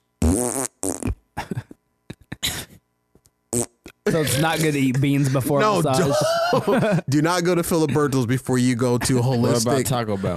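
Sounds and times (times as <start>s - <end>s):
fart: 0.2s - 1.2s, 3.5s - 4.7s
laughter: 4.1s - 8.4s, 9.0s - 10.3s
speech: 4.1s - 10.3s.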